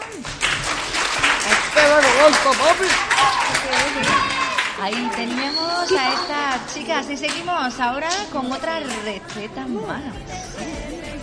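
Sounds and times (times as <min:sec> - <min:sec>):
audience applause: 0:00.0 - 0:07.6
speech: 0:01.9 - 0:11.0.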